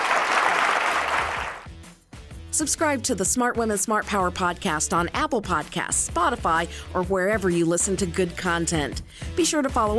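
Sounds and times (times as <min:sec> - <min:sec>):
crowd applause: 0:00.0 - 0:01.7
speech: 0:02.6 - 0:09.9.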